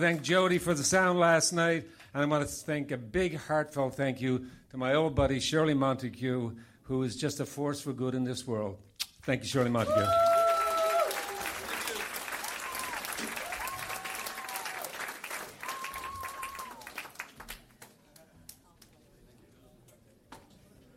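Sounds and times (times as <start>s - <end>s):
speech: 0.0s - 10.3s
audience applause: 9.6s - 18.3s.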